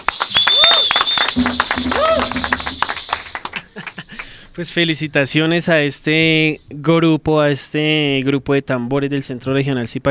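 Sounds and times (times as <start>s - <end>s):
audience applause: 0.0s - 3.8s
speech: 4.6s - 10.0s.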